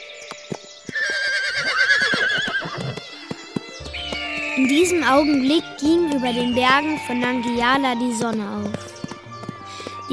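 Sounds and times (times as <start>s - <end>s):
horse hooves clopping: 0.0s - 10.1s
mounted horse letting out a long wavering whinny: 0.9s - 4.6s
speech: 4.6s - 8.8s.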